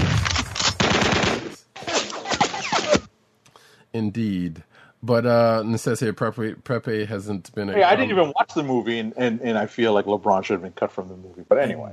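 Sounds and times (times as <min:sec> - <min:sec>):
automatic gunfire sound effect: 0:00.1 - 0:01.6
speech: 0:03.9 - 0:11.9.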